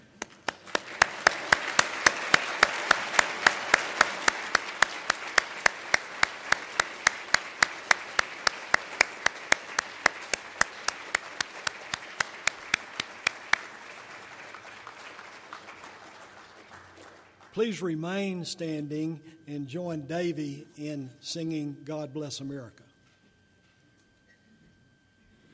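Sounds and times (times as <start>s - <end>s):
standing audience applause for vets: 0.0s - 17.6s
speech: 17.6s - 22.8s.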